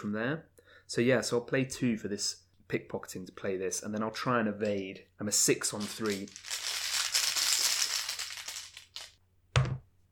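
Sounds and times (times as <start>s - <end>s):
speech: 0.0s - 6.6s
heavy game tokens rattling in upgraded cases: 5.7s - 9.2s.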